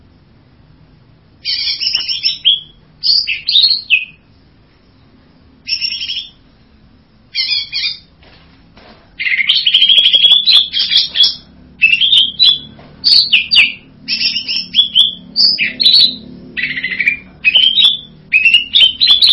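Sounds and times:
bird buzzy whistled song: 0:01.4 - 0:04.3, 0:05.6 - 0:06.5, 0:07.3 - 0:08.1, 0:09.2 - 0:19.3.

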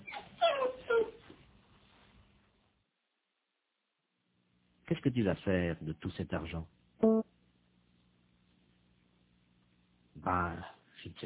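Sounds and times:
dog whimpering: 0:00.0 - 0:01.2
speech: 0:05.0 - 0:06.8, 0:10.3 - 0:11.2.

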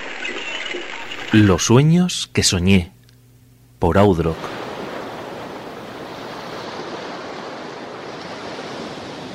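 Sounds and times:
speech: 0:01.3 - 0:03.0, 0:03.8 - 0:04.6
ocean waves crashing against cliffs: 0:04.3 - 0:09.3.

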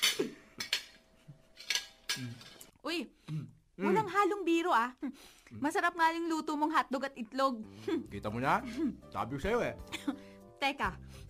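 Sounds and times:
dishes and cutlery clattering as people eat hotdog and eggs: 0:00.0 - 0:02.7
speech: 0:02.2 - 0:11.2.

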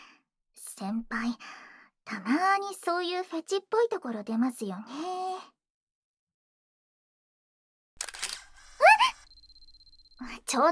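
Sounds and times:
speech: 0:00.8 - 0:05.5, 0:10.2 - 0:10.6
camera shutter clicks as a photo is taken: 0:08.0 - 0:09.3.

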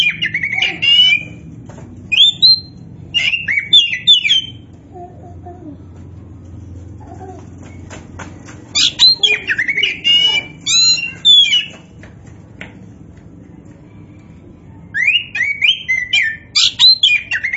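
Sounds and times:
Oriental magpie-robin song: 0:00.0 - 0:01.4, 0:02.1 - 0:04.6, 0:08.8 - 0:11.8, 0:15.0 - 0:17.5.

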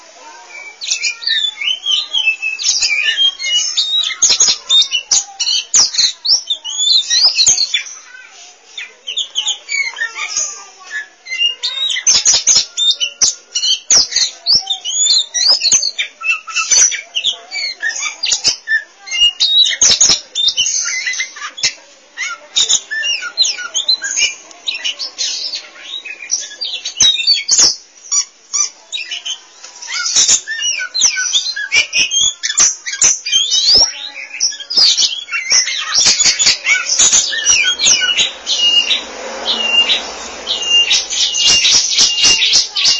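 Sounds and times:
Oriental magpie-robin singing: 0:00.0 - 0:42.9.

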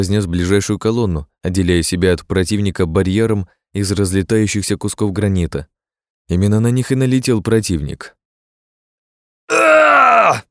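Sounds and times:
speech: 0:00.0 - 0:08.2, 0:09.5 - 0:10.4
loud drawn-out cry of pain in a hall with granite columns: 0:09.5 - 0:10.4.

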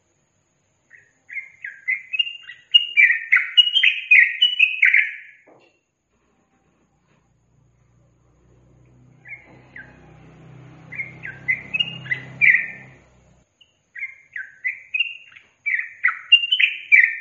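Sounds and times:
yellow-vented bulbul singing: 0:00.9 - 0:05.4, 0:08.8 - 0:17.2.

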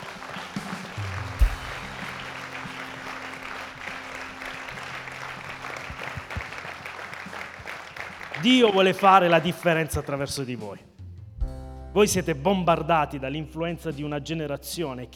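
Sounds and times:
audience applauding: 0:00.0 - 0:10.2
speech: 0:08.4 - 0:10.9, 0:12.0 - 0:15.1.

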